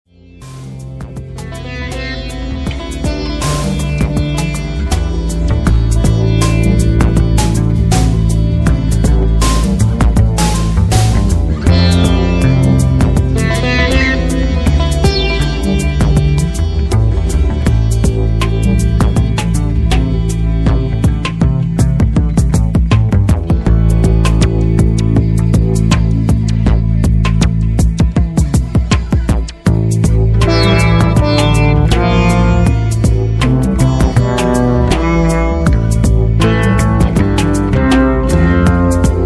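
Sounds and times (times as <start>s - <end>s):
Delhi blues music: 0.1s - 39.2s.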